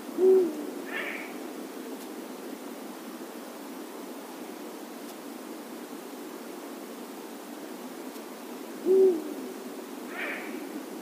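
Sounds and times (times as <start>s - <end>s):
Eurasian eagle-owl Bubo bubo deep hoot: 0.1s - 1.4s, 8.8s - 9.5s, 10.1s - 10.8s.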